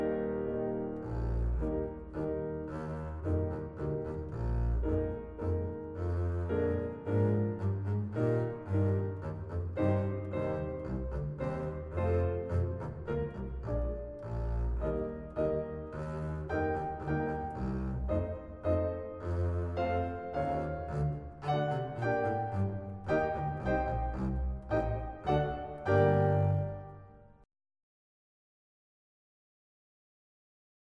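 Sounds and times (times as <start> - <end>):
double bass: 0.1 - 27.0.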